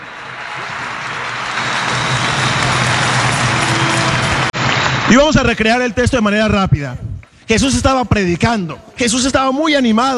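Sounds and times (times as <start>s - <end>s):
audience applause: 0.0s - 5.6s
speech: 5.1s - 10.1s.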